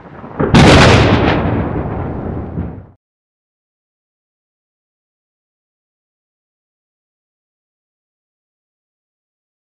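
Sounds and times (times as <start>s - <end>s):
thunder: 0.0s - 3.0s.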